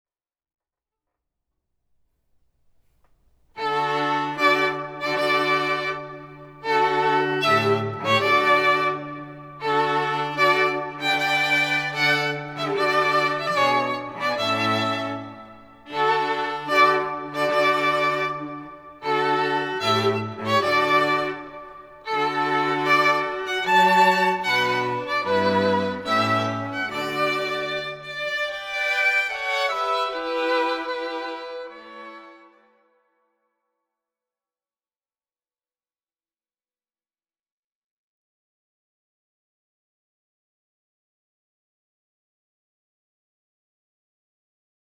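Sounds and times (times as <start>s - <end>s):
string quartet: 3.6s - 32.6s.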